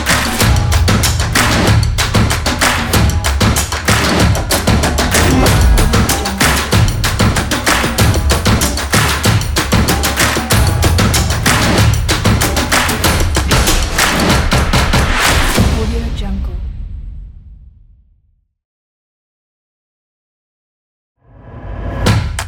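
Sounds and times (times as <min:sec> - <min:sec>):
energetic percussion drums: 0:00.0 - 0:16.4, 0:22.0 - 0:22.4.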